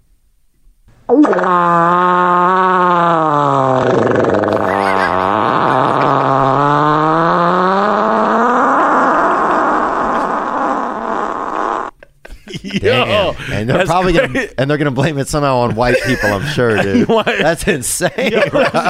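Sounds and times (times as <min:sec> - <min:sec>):
speech: 0:01.1 - 0:02.8, 0:13.7 - 0:18.8
long loud fart in a played video: 0:01.1 - 0:12.0
laughter: 0:04.5 - 0:06.6, 0:12.0 - 0:14.6, 0:15.6 - 0:18.8.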